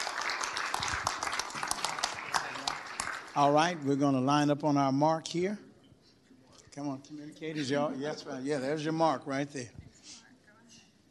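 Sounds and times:
round of applause: 0.0s - 4.0s
speech: 3.4s - 5.6s, 6.8s - 9.8s.

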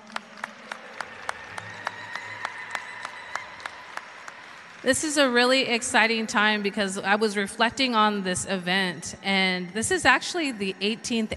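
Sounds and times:
audience applause: 0.0s - 5.2s
speech: 4.8s - 11.3s.

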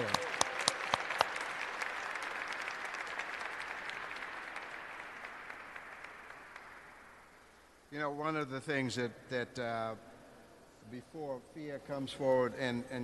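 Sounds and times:
audience applause: 0.0s - 7.2s
speech: 8.0s - 10.1s, 10.9s - 13.0s.

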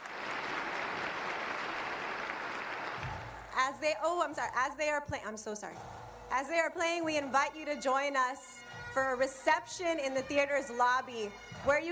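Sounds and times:
audience applause: 0.0s - 3.6s
speech: 3.6s - 11.9s.

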